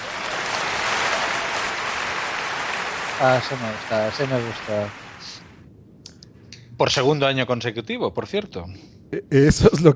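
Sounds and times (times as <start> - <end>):
audience applause: 0.0 - 5.5
speech: 3.2 - 5.4, 6.8 - 9.9.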